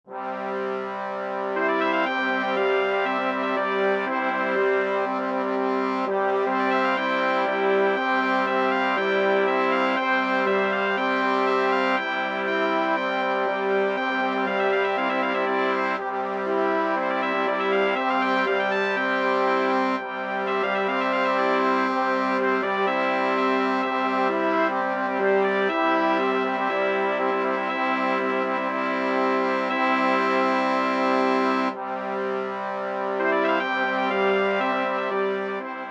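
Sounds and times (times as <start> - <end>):
brass quintet: 0.0 - 35.8.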